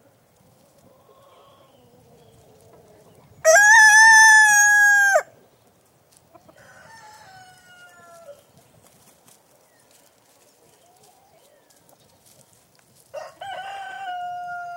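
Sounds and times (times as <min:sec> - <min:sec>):
rooster crowing cock-a-doodle-doo in a yard: 0:03.4 - 0:05.3, 0:06.6 - 0:08.4, 0:13.1 - 0:14.7.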